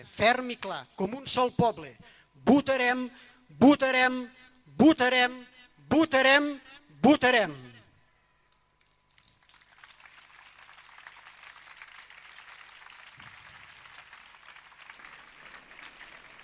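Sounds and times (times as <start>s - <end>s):
speech: 0.0s - 7.8s
audience applause after speeches: 9.4s - 16.4s.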